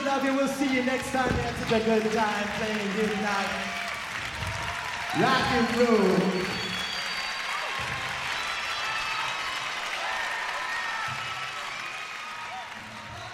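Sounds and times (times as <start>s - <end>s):
live concert audience applause: 0.0s - 13.3s
speech: 0.2s - 3.8s, 5.2s - 6.7s.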